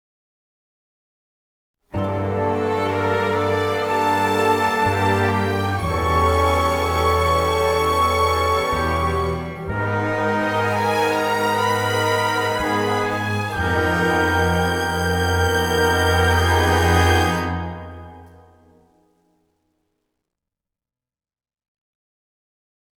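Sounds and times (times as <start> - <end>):
lush music bridge: 2.0 - 18.8.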